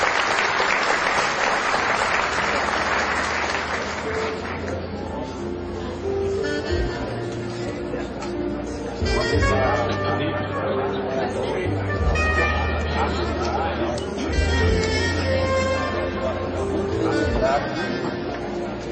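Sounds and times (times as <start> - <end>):
sustained crowd applause: 0.0 - 4.8
faint voices: 4.0 - 18.9.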